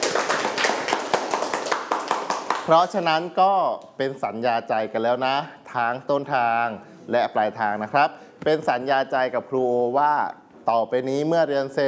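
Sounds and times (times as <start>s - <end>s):
students clapping for themselves during a lesson: 0.0s - 3.0s
speech: 2.7s - 11.8s.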